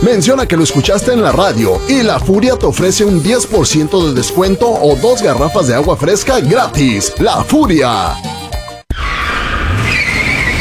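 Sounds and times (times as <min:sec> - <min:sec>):
speech: 0:00.0 - 0:08.4
car tires squealing: 0:08.9 - 0:10.5
grinding skid noise with a high whine: 0:08.9 - 0:10.5.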